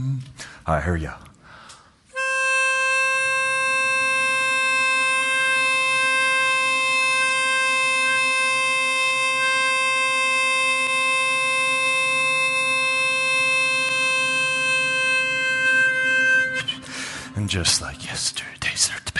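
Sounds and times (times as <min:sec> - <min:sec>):
speech: 0:00.0 - 0:01.3, 0:17.4 - 0:19.1
love tuner blown at 528 hertz: 0:02.2 - 0:18.2
people humming: 0:05.8 - 0:18.3.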